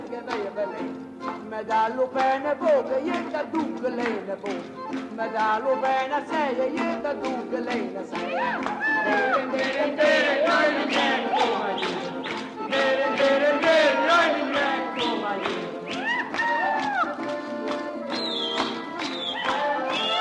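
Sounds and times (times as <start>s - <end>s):
tarantella folk music with verses: 0.0s - 20.1s.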